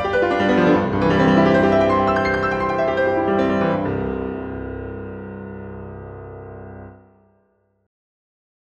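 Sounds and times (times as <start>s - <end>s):
allegro instrumental etude: 0.0s - 3.9s.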